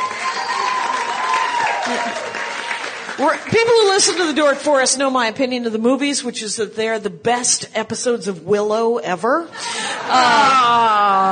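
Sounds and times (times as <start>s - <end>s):
audience applause: 0.0s - 4.4s
laughter: 1.7s - 2.5s, 9.6s - 11.3s
speech: 1.9s - 2.4s, 3.2s - 11.3s.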